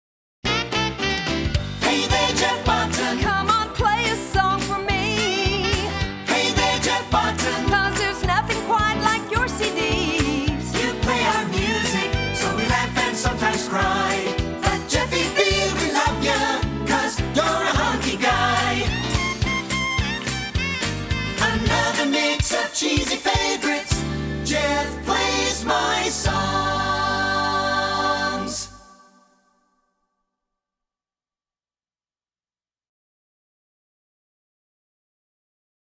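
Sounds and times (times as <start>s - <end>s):
song: 0.5s - 29.2s.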